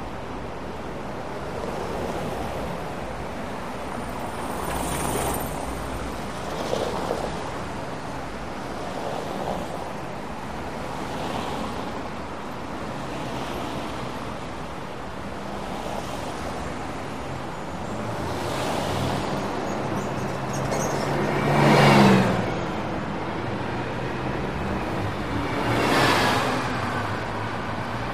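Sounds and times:
close medium traffic: 0.0 - 28.1.

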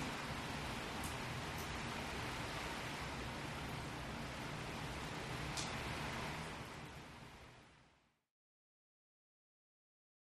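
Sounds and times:
heavy rain outdoors: 0.0 - 8.2.

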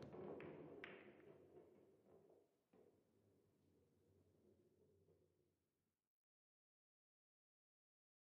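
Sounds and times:
pool game billiard balls: 0.0 - 1.3.

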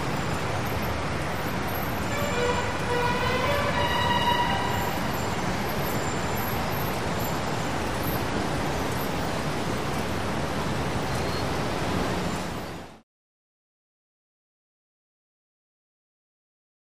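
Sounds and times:
heavy tunnel traffic in a big city: 0.0 - 13.0.

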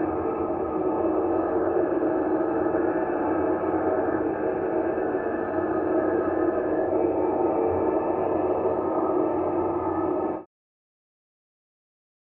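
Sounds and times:
tonal whirring ambient drone: 0.0 - 10.5.

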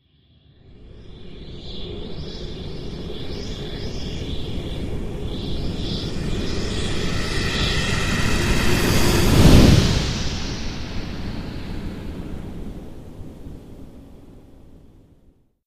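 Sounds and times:
ventilator sucking air: 4.6 - 13.2.

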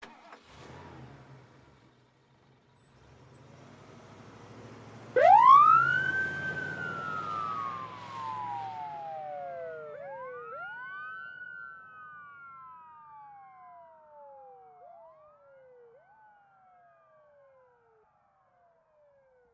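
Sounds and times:
ambulance starting: 0.0 - 15.4.

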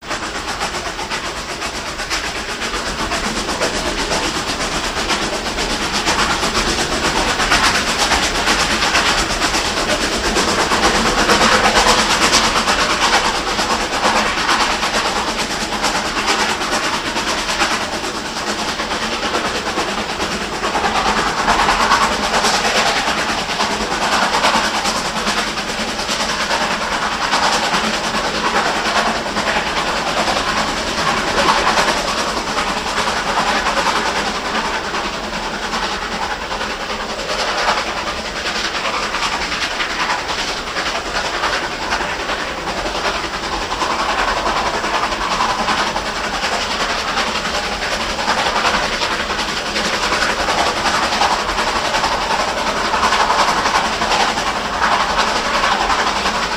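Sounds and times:
steam locomotive in daylight: 0.0 - 56.5.

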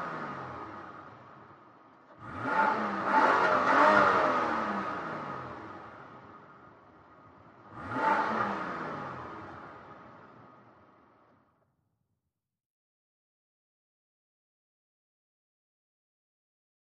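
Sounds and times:
SUV engine revving: 0.0 - 1.1, 2.1 - 6.1, 7.7 - 9.9
SUV tire noise: 0.0 - 11.2.

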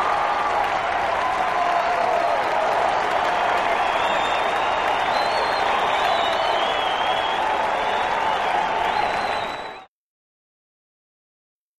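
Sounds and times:
arena crowd yelling and cheering at a sports arena: 0.0 - 9.9.

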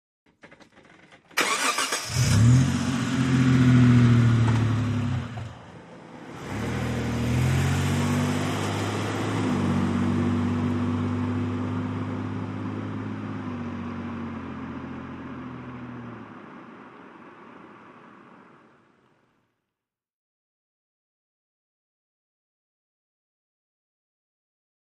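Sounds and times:
1998 Mitsubishi Montero starting and driving away, exterior: 0.4 - 19.3.

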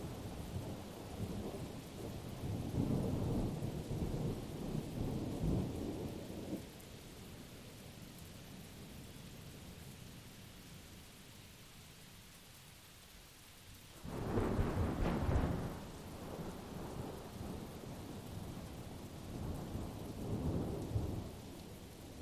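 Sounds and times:
continuous thunder at Blue Mountain Lake Adirondacks New York: 0.0 - 6.8, 14.0 - 22.2
rain at Blue Mountain Lake Adirondacks New York: 0.0 - 22.2.

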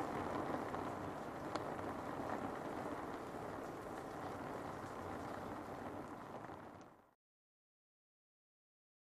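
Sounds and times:
medium rain on a roof: 0.0 - 7.2.

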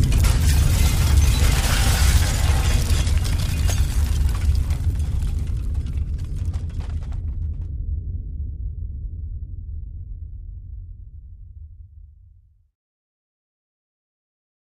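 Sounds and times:
earthquake debris falling: 0.0 - 7.6.

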